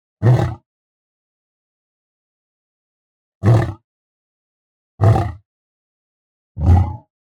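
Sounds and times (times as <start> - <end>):
lion roaring: 0.2 - 0.6, 3.4 - 3.8, 5.0 - 5.4, 6.6 - 7.1.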